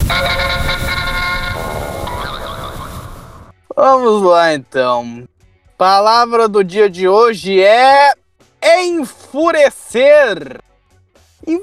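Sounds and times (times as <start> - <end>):
podcast jingle introducing a word-of-the-day segment: 0.0 - 2.6
speech: 3.8 - 10.7, 11.4 - 11.6.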